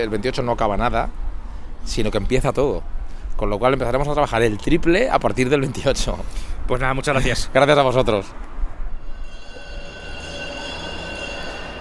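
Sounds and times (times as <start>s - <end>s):
speech: 0.0s - 1.2s, 1.8s - 8.5s
train rumbling at Alicante railway station: 7.9s - 11.7s
train wheel squeal at Alicante railway station: 8.8s - 11.7s.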